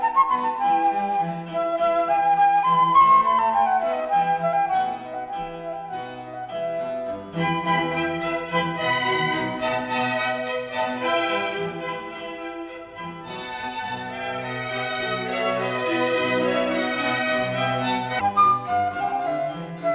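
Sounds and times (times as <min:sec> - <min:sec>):
flute concerto: 0:00.0 - 0:19.9.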